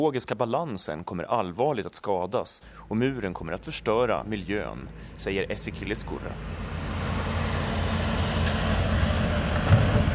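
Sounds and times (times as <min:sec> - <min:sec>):
speech: 0:00.0 - 0:06.8
cement mixer trucks driving past at border wall construction: 0:02.7 - 0:10.1.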